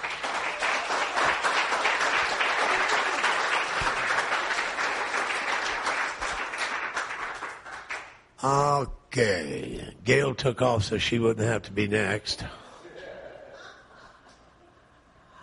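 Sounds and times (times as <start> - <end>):
audience cheering: 0.0 - 6.7
audience applause: 0.0 - 8.2
speech: 8.4 - 12.6
laughter: 12.8 - 14.8.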